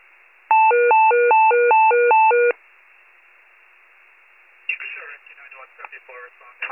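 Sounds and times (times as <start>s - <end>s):
fire pager alert: 0.5s - 2.5s.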